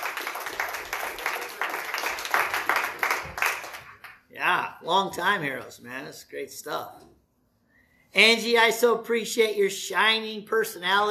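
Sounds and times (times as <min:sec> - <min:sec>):
audience applause: 0:00.0 - 0:04.2
speech: 0:04.5 - 0:07.1, 0:08.1 - 0:11.0.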